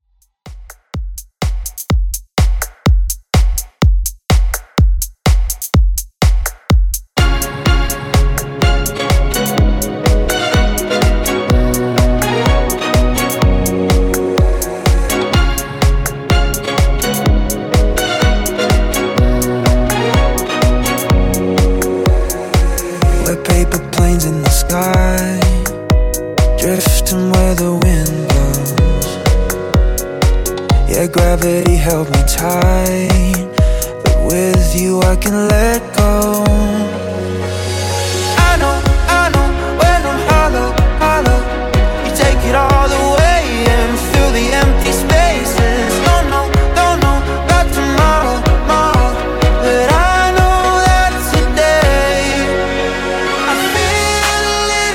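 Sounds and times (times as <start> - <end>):
club music at 125 BPM: 0.3 - 54.9.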